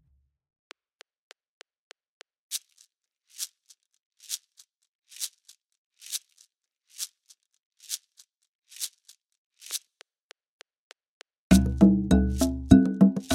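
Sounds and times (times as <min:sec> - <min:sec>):
Latin American music at 100 bpm: 0:11.5 - 0:13.3.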